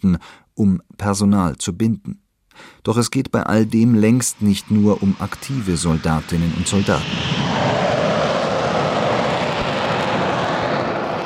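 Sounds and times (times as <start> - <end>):
speech: 0.0 - 7.9
Eurofighter fighter jets roaring over airfield in Lager Lechfeld: 4.3 - 11.2.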